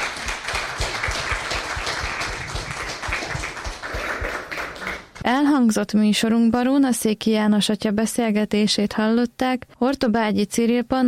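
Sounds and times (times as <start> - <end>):
crowd applauding: 0.0 - 5.2
speech: 5.3 - 11.0.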